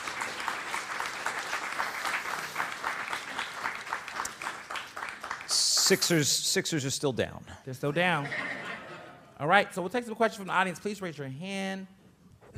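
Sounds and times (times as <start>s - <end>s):
audience applause: 0.0s - 6.2s
speech: 5.9s - 8.6s, 9.4s - 12.0s
laughter: 7.9s - 9.4s.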